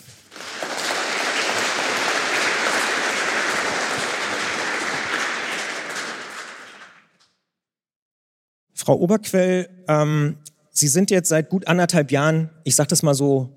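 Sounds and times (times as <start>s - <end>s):
audience applause: 0.0s - 7.2s
speech: 8.9s - 13.5s.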